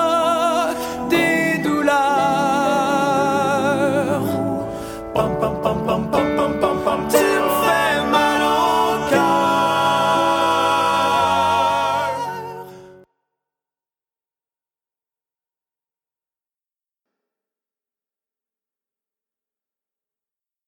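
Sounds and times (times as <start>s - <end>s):
chanting: 0.0s - 13.0s.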